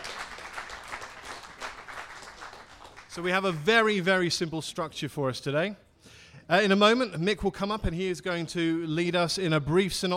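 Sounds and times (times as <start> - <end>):
audience applauding: 0.0 - 3.6
speech: 3.2 - 5.8, 6.5 - 10.1.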